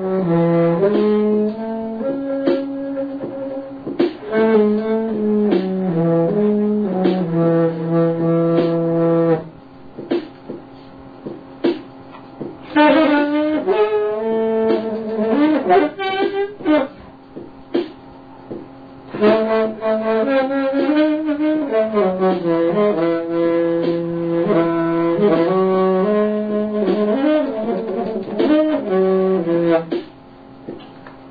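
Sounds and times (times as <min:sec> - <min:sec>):
trombone: 0:00.0 - 0:09.5, 0:12.6 - 0:16.9, 0:19.1 - 0:30.0.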